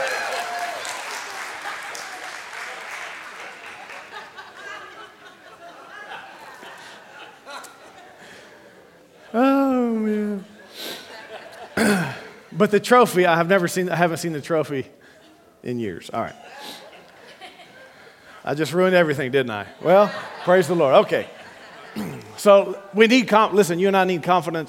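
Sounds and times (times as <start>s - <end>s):
audience applause: 0.0s - 5.2s
laughter: 1.3s - 13.3s, 16.2s - 22.7s
speech: 11.8s - 16.8s, 18.4s - 21.4s, 22.0s - 24.6s.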